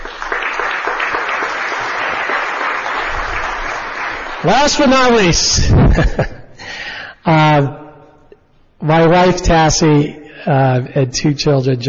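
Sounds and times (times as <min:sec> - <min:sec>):
audience applause: 0:00.0 - 0:05.2
speech: 0:04.4 - 0:06.4, 0:07.2 - 0:07.8, 0:08.8 - 0:11.8.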